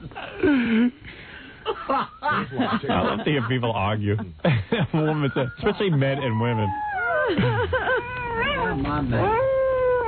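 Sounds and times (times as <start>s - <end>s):
laughter: 1.6s - 8.3s
speech: 1.9s - 9.5s
Doberman dog yowling: 5.3s - 10.0s.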